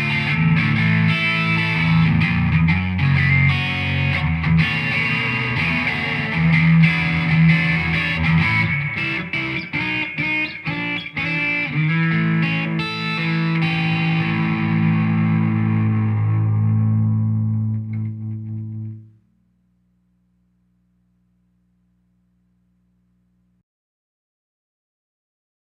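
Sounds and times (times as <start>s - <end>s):
Telecaster electric guitar playing swing blues with moderate grind: 0.0s - 19.2s.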